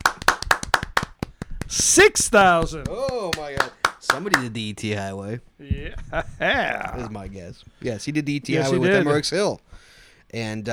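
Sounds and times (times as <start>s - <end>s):
audience clapping: 0.0s - 4.6s
speech: 1.7s - 10.7s.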